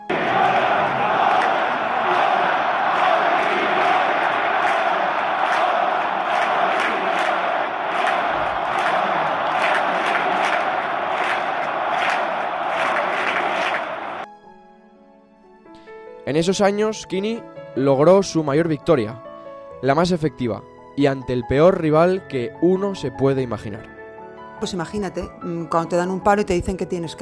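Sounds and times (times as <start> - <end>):
stadium crowd chanting a player's name at El Molinón: 0.0 - 14.2
speech: 16.3 - 23.9, 24.6 - 27.2.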